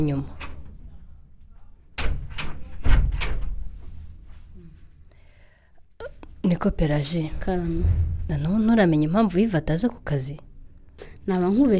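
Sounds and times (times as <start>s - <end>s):
speech: 0.0s - 0.5s, 6.5s - 10.5s, 11.2s - 11.7s
door being closed with knocks and thuds: 2.0s - 3.6s.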